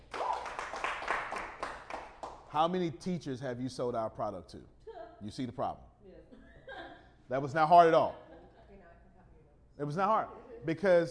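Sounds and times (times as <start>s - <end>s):
people clapping: 0.0s - 2.5s
speech: 2.6s - 5.9s, 7.3s - 8.2s, 9.8s - 11.0s.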